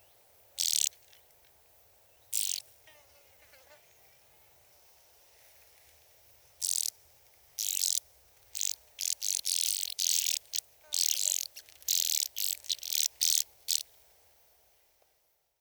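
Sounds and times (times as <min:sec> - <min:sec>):
band-winged grasshopper stridulation at Sissonne: 0:00.6 - 0:01.2, 0:02.3 - 0:02.6, 0:06.6 - 0:13.9.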